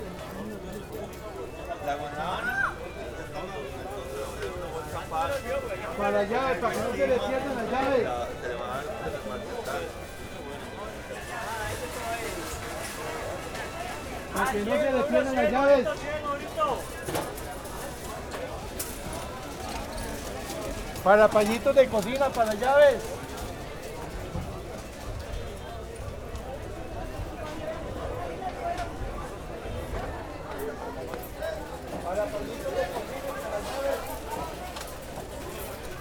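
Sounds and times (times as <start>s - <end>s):
fair at Plaza Viquez: 0.0s - 35.9s
carts rolling at a fair: 3.8s - 35.9s.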